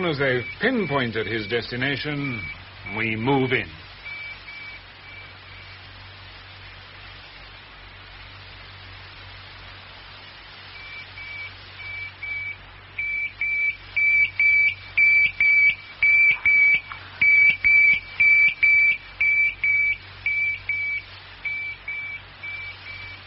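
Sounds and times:
speech: 0.0 - 3.8
tracking receiver beeping: 0.0 - 5.7, 10.8 - 23.2.

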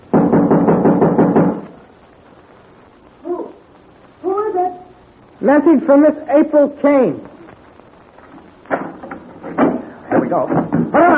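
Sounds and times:
knocking on a door: 0.1 - 1.7, 9.6 - 11.1
speech: 5.4 - 7.3.

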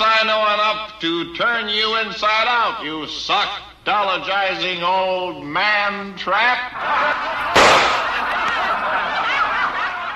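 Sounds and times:
speech: 0.3 - 8.7
audience laughing at a burlesque line: 6.7 - 10.1
single shot from a tiny pistol: 7.6 - 8.3.

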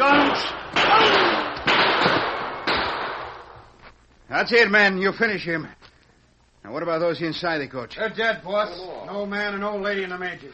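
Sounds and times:
gunshots fired at a coach: 0.0 - 3.8
speech: 0.4 - 0.7, 4.4 - 5.9, 6.6 - 10.5.

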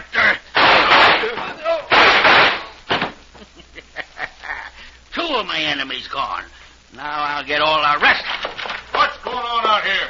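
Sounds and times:
gunshots in a radio drama: 0.6 - 3.2
laughter: 3.3 - 4.9
speech: 5.3 - 8.3, 9.3 - 10.0.

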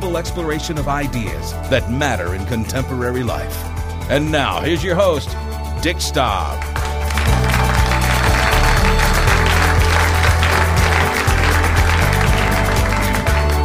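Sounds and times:
speech: 0.2 - 6.8
audience applause: 6.6 - 13.6.

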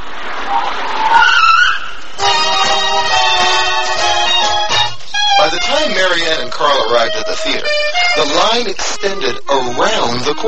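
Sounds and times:
taxi tires skidding as it pulls up: 0.0 - 7.6
speech: 6.6 - 10.4.

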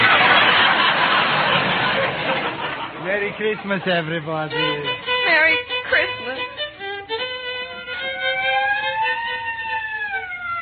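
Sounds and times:
laughter: 0.0 - 5.0
speech: 3.4 - 6.2
police squad car siren pulling up: 7.6 - 10.6.

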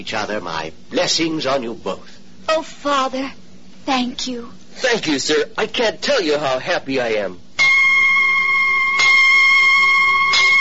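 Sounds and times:
speech: 0.0 - 7.5
church bells ringing: 7.6 - 10.5.

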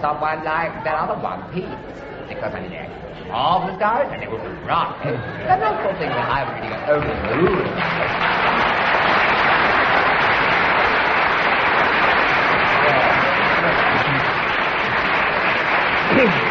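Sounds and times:
speech: 0.0 - 8.4
spontaneous audience applause: 6.0 - 16.5.

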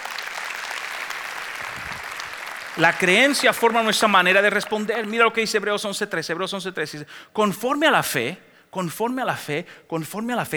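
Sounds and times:
church congregation applauding during a sermon: 0.0 - 6.5
speech: 2.8 - 10.5.

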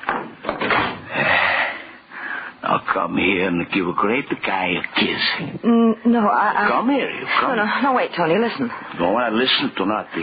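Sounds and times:
door shutting: 0.0 - 1.1
speech: 3.0 - 10.2.

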